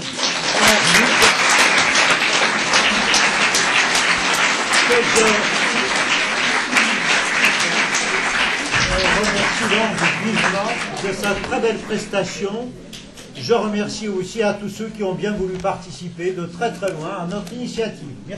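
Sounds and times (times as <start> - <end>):
audience applause: 0.0 - 12.4
speech: 5.0 - 5.5, 9.6 - 18.3.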